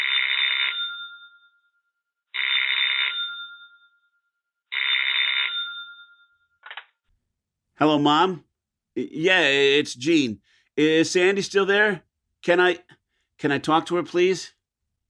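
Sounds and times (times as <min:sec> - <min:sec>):
telephone ringing: 0:00.0 - 0:07.0
speech: 0:07.8 - 0:14.6.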